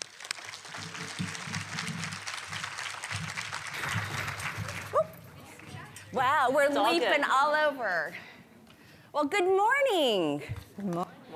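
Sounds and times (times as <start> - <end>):
audience applause welcoming a speaker at a business conference session: 0.0 - 5.8
speech: 6.2 - 8.3, 9.2 - 11.3.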